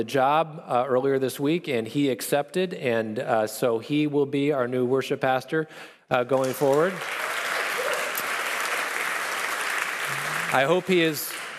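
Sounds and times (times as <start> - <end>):
speech: 0.0 - 7.4, 10.1 - 11.4
audience applause: 6.4 - 11.5.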